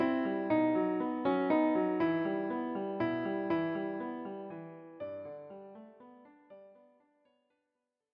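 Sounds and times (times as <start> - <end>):
folk tune on piano: 0.0 - 7.2.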